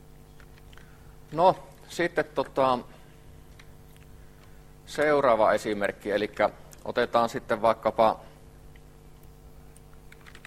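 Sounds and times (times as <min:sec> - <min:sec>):
speech: 0:01.3 - 0:03.0, 0:04.9 - 0:08.3
typing on a computer keyboard in a programming lesson: 0:10.0 - 0:10.4.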